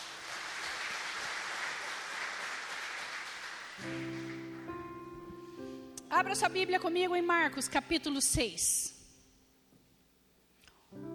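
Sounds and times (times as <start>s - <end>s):
congregation applauding in a church service: 0.0s - 5.2s
speech: 3.8s - 4.2s, 6.1s - 8.9s.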